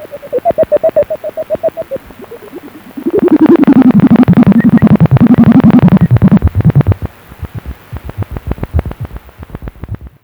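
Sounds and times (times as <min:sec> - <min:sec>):
lesser horseshoe bat echolocation calls in Haute-Vienne, France: 0:00.0 - 0:07.1.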